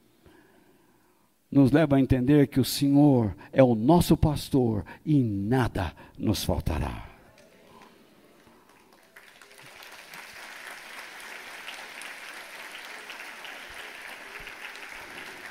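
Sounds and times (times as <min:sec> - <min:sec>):
speech: 0:01.5 - 0:07.1
audience applauding: 0:07.3 - 0:15.4.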